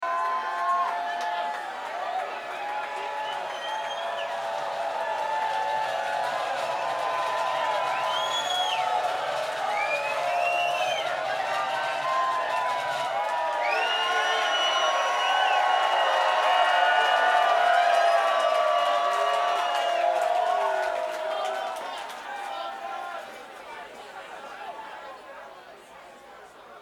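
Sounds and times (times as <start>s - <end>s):
crowd: 0.0s - 26.8s.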